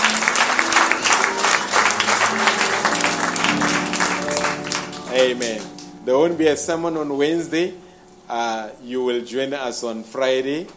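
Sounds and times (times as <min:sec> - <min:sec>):
audience applauding: 0:00.0 - 0:05.9
speech: 0:05.2 - 0:10.7.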